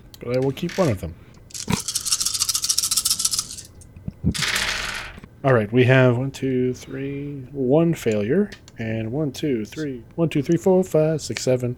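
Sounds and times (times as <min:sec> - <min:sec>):
speech: 0:00.2 - 0:01.8, 0:05.4 - 0:11.7
dice being rolled: 0:00.6 - 0:05.2.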